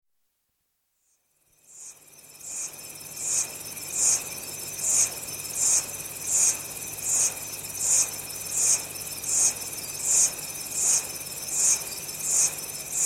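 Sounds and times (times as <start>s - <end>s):
insects chirring in chorus in early evening tropical rain forest near Bangui: 1.5s - 13.0s.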